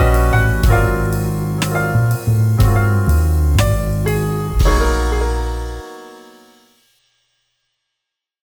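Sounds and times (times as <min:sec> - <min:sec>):
relaxed jazz piano trio playing: 0:00.0 - 0:06.7.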